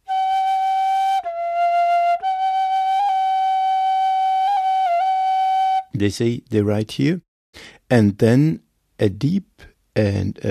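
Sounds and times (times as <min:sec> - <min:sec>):
loud flute-like bird song tones: 0:00.0 - 0:05.9
speech: 0:06.0 - 0:10.4.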